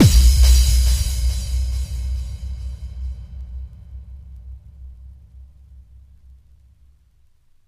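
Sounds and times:
bass drum kick with reverb: 0.0s - 5.3s.

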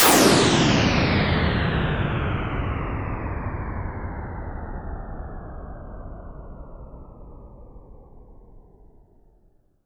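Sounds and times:
downward sweep effect: 0.0s - 6.0s.

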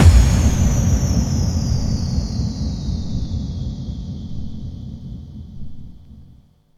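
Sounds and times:
bass drum FX kicks: 0.0s - 4.8s.

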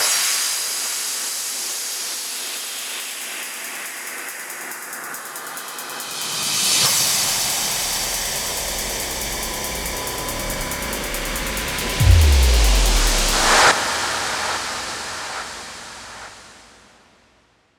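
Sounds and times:
hands up and trance fills: 2.4s - 16.7s.

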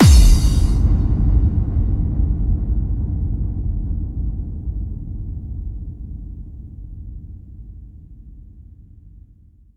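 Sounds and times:
bass drum kick with reverb: 0.0s - 4.8s.

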